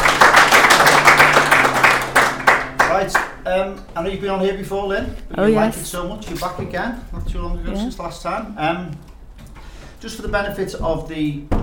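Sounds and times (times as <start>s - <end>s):
audience applause: 0.0s - 3.4s
speech: 3.0s - 9.1s, 10.0s - 11.6s.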